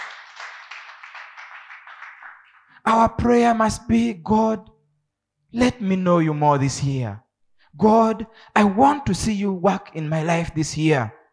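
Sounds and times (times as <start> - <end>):
church congregation clapping during a sermon: 0.0 - 3.0
speech: 2.8 - 4.7, 5.5 - 7.2, 7.8 - 11.2.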